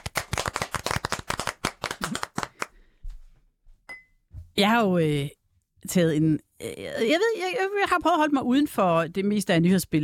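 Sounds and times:
round of applause: 0:00.0 - 0:02.7
speech: 0:04.6 - 0:10.0.

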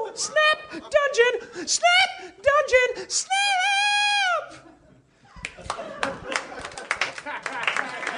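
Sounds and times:
speech: 0:00.2 - 0:03.7
laughter: 0:04.5 - 0:08.1
audience clapping wearily: 0:05.4 - 0:08.1.

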